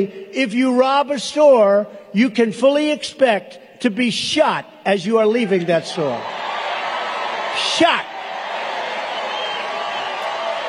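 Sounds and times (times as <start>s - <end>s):
speech: 0.0s - 6.6s, 7.6s - 8.1s
crowd at a political rally: 5.3s - 10.6s.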